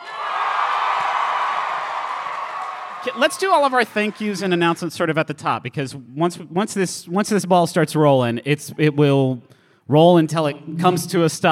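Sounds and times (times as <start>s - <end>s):
audience cheering: 0.0s - 4.9s
speech: 3.0s - 11.4s.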